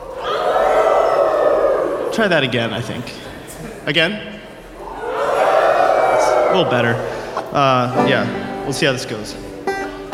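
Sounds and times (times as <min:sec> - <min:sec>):
audience howling like a coyote: 0:00.0 - 0:02.3, 0:04.7 - 0:08.4
speech: 0:02.2 - 0:03.2, 0:03.9 - 0:04.4, 0:06.5 - 0:09.4.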